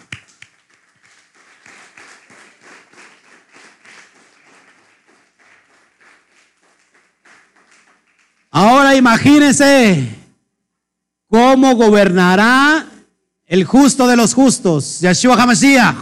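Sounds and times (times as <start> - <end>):
applause: 0.0 - 9.4
speech: 8.9 - 10.2, 11.3 - 12.9, 13.5 - 16.0.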